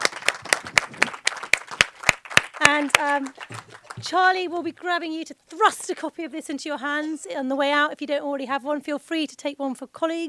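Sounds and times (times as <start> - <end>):
hand claps: 0.0 - 4.4
speech: 2.7 - 10.2.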